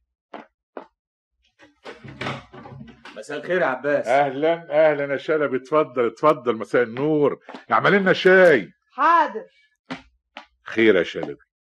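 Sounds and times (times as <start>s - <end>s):
door opening clatter in an old Arabic radio drama: 1.6s - 3.3s
knock-like thumps in a radio drama: 1.8s - 3.3s
speech: 3.2s - 9.6s, 10.8s - 11.5s.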